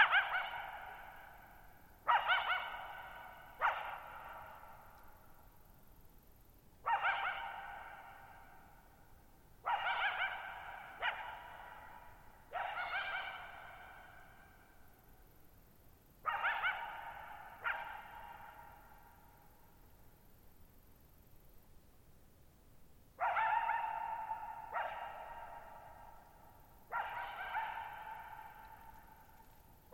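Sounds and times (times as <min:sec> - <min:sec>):
coyote barking with echoes: 0:00.0 - 0:05.1, 0:06.8 - 0:08.7, 0:09.6 - 0:14.7, 0:16.2 - 0:19.3, 0:23.2 - 0:29.9.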